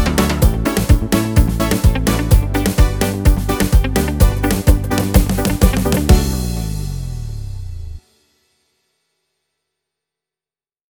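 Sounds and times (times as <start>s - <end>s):
samba dance music: 0.0s - 7.4s.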